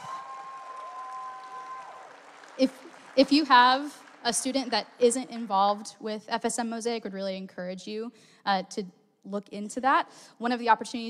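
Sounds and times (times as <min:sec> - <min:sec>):
audience applause: 0:00.0 - 0:05.0
speech: 0:02.6 - 0:11.0.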